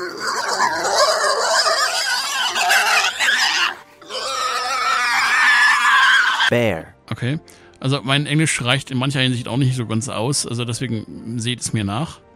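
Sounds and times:
wild boar grunting: 0:00.0 - 0:06.5
speech: 0:06.5 - 0:12.3.

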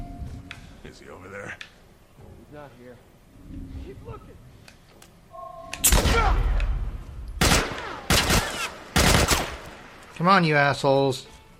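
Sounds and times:
speech: 0:00.9 - 0:04.5, 0:05.8 - 0:06.6, 0:10.2 - 0:11.3
video game gunfire: 0:07.4 - 0:09.7.

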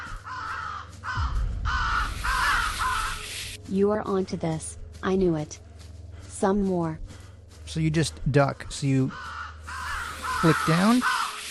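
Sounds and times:
ravens cawing in a video game: 0:00.0 - 0:03.6, 0:08.6 - 0:11.4
low rumbling video game background: 0:00.0 - 0:11.1
speech: 0:03.7 - 0:05.7, 0:06.4 - 0:07.0, 0:07.7 - 0:09.3, 0:10.4 - 0:11.2.

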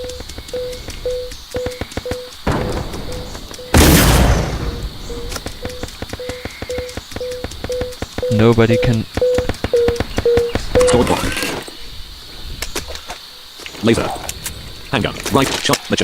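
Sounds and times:
repeating electronic game beeps: 0:00.0 - 0:03.9, 0:04.5 - 0:11.3
sharp clicking game sounds: 0:00.0 - 0:11.3
shotgun blast in a video game: 0:02.5 - 0:05.4
speech: 0:08.4 - 0:09.2, 0:10.9 - 0:11.6, 0:13.8 - 0:14.2, 0:14.9 - 0:16.0.

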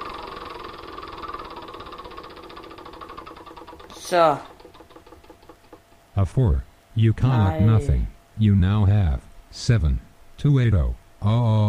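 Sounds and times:
wheel spinning in a computer game show video game: 0:00.0 - 0:06.1
speech: 0:04.1 - 0:04.5, 0:06.2 - 0:11.6.

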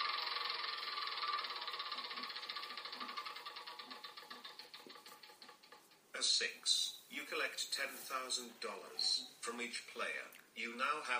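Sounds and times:
The Game of Life video game spinner wheel ratcheting clicks: 0:00.0 - 0:06.1
speech: 0:06.2 - 0:11.1.

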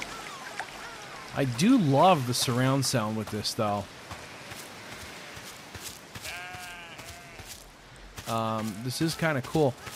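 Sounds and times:
speech: 0:01.4 - 0:04.0, 0:08.3 - 0:09.9
sheep bleating: 0:06.2 - 0:07.6, 0:08.6 - 0:09.0.

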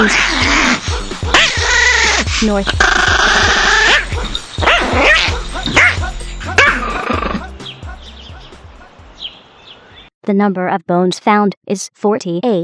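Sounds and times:
speech: 0:00.0 - 0:00.6, 0:02.4 - 0:03.3, 0:10.3 - 0:12.6
cartoonish dog barking in a video game: 0:00.0 - 0:09.0.

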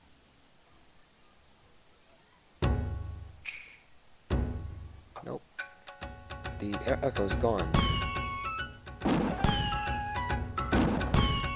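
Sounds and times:
video game drum sounds: 0:02.6 - 0:03.3, 0:04.3 - 0:04.8, 0:05.6 - 0:11.5
speech: 0:05.2 - 0:05.5, 0:06.6 - 0:08.0.

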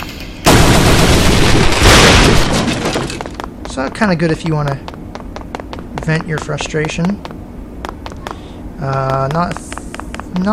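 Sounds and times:
door being smashed in a video game: 0:00.5 - 0:03.4
speech: 0:03.8 - 0:04.9, 0:06.1 - 0:07.3, 0:08.8 - 0:09.7, 0:10.3 - 0:10.5.

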